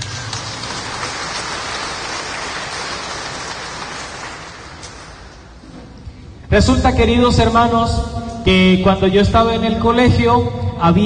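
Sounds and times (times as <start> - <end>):
audience clapping: 0.0 - 5.6
speech: 6.6 - 11.0.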